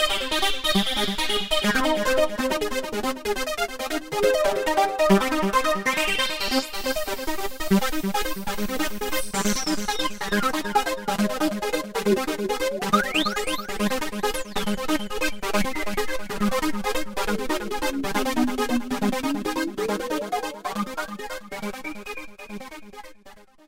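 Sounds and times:
trancey synthesizer arpeggio: 0.0 - 23.0.

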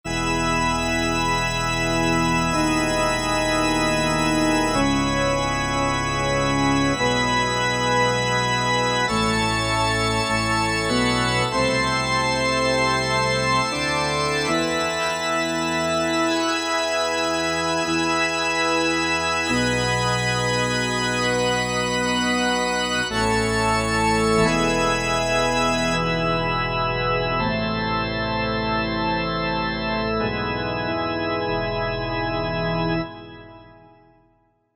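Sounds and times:
Korg MSC-9S pipe organ: 0.0 - 34.4.

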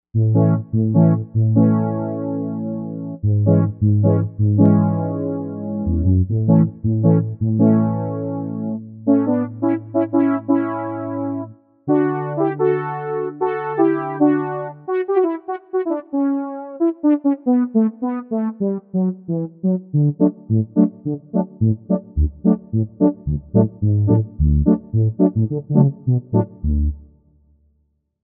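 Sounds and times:
Novation UltraNova synthesizer: 0.2 - 27.3.

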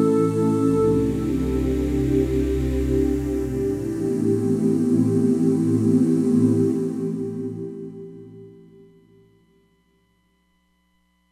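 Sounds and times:
synthesizer angels choir sound: 0.0 - 8.9.

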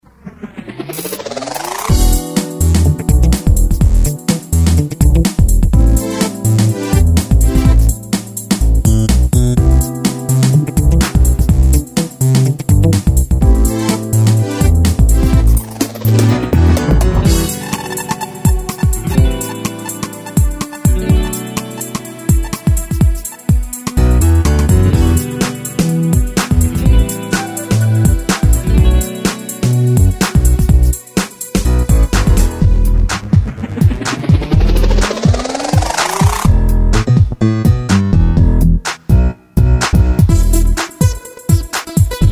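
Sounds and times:
funk music on Yamaha YPT-400 keyboard: 0.4 - 42.3.

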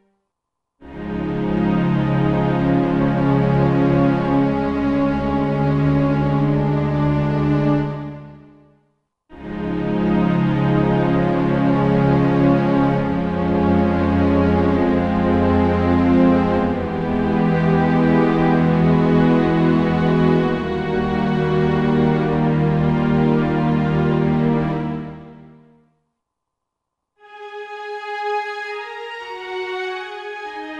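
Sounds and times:
synthesizer orchestral strings piano-forte: 0.9 - 8.4, 9.4 - 25.6, 27.2 - 30.7.

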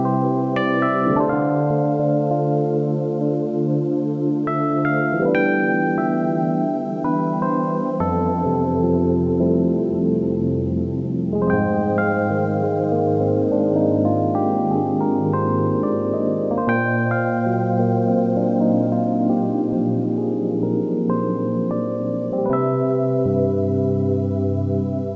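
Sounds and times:
resonant piano patch on a Korg Radias-R synthesizer: 0.0 - 25.1.

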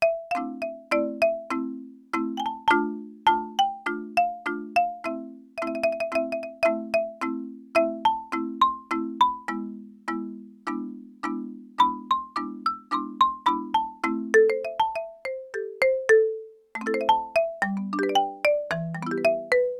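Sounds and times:
marimba: 0.0 - 19.7.

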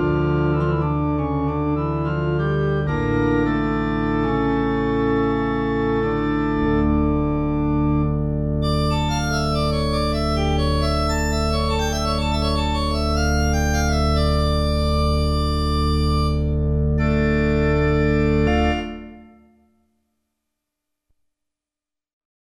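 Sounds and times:
pipe organ factory patch on a Roland Jupiter-8 synthesizer: 0.0 - 19.4.

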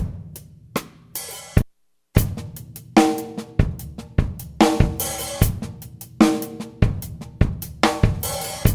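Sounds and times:
drum loop at 74 bpm from Yamaha A4000: 0.0 - 8.7.

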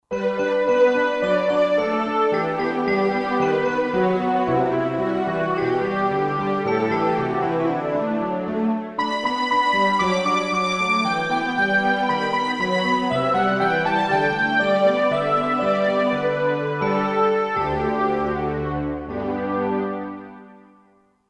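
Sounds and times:
Roland SR-JV80-16 Orchestral II synth music: 0.2 - 20.6.

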